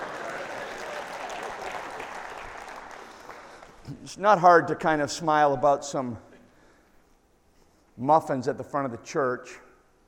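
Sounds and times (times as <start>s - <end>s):
audience clapping: 0.0s - 3.9s
speech: 3.9s - 6.3s, 8.0s - 9.7s.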